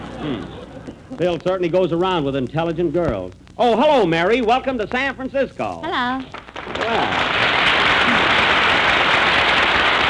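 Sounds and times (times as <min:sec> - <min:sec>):
speech: 0:00.2 - 0:07.4
audience in San Francisco applauding a woman: 0:06.3 - 0:10.0.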